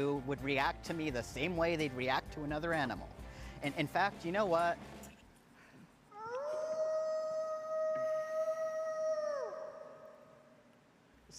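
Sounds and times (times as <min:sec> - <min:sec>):
speech: 0:00.0 - 0:05.0
person imitating a wolf howl: 0:06.1 - 0:10.5.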